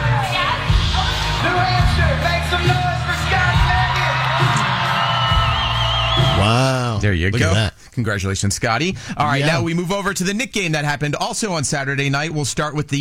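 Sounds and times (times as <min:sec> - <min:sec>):
crowd cheering after on-stage marriage proposal: 0:00.0 - 0:07.0
speech: 0:06.4 - 0:12.9.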